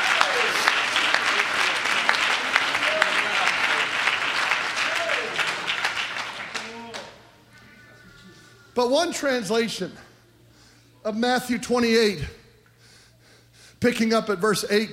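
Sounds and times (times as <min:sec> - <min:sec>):
crowd, audience clapping hands: 0:00.0 - 0:07.3
speech: 0:08.8 - 0:10.0, 0:11.0 - 0:12.4, 0:13.8 - 0:14.9.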